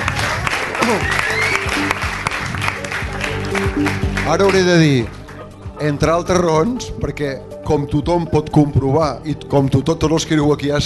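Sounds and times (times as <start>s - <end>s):
audience applause: 0.0s - 5.3s
speech: 0.9s - 1.2s, 3.7s - 5.2s, 5.8s - 10.8s.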